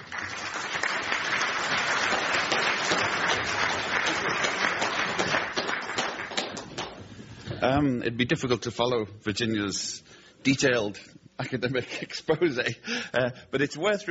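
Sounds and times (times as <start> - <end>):
applause from a seated audience at a panel discussion on the United Nations: 0.0 - 7.0
speech: 7.6 - 14.0.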